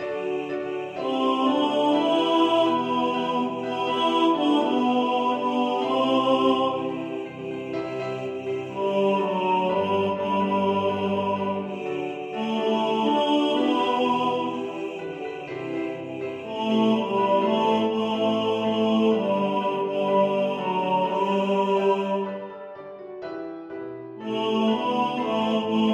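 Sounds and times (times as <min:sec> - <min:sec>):
tenor singing in the foreground: 0:00.0 - 0:22.6, 0:24.2 - 0:25.9
piano: 0:00.0 - 0:25.9.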